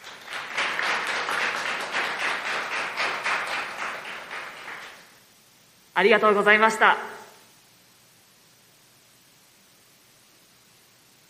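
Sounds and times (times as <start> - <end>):
audience applause: 0.0 - 5.1
speech: 6.0 - 7.1.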